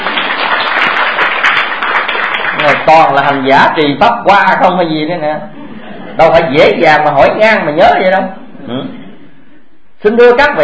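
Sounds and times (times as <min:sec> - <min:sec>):
Buddhist followers applauding at a dharma talk: 0:00.0 - 0:03.2
speech: 0:02.9 - 0:05.6, 0:06.2 - 0:09.0, 0:10.0 - 0:10.6.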